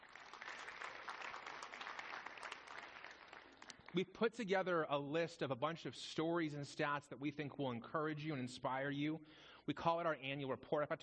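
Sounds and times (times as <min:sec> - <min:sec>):
audience clapping: 0:00.0 - 0:04.1
speech: 0:03.9 - 0:11.0.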